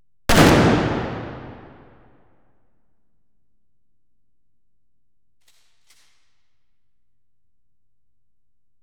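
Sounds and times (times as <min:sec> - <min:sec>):
explosions: 0:00.3 - 0:02.0
pistol shots: 0:00.3 - 0:02.0
cannon fire: 0:00.3 - 0:02.1
gunfire: 0:00.3 - 0:02.1.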